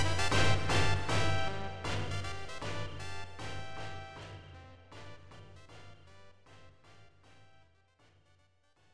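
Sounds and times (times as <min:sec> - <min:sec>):
march music with hits: 0:00.0 - 0:02.6.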